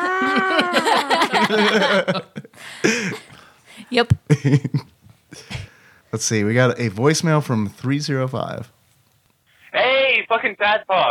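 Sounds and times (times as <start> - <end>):
person imitating an irritated cat yowl: 0.0 - 1.2
laughter: 0.0 - 3.4, 4.1 - 5.7
speech: 0.7 - 3.0, 4.0 - 5.4, 6.1 - 8.8, 10.2 - 11.0.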